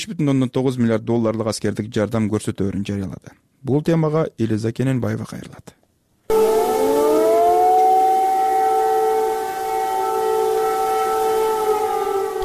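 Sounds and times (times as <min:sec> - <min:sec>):
speech: 0:00.0 - 0:06.5
air raid sirens over Kyiv warning of a missile threat: 0:06.3 - 0:12.4.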